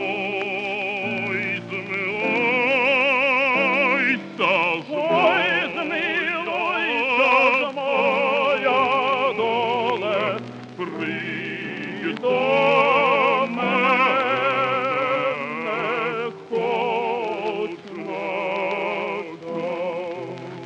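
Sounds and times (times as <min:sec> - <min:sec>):
Ukrainian tenor singing: 0:00.0 - 0:20.6.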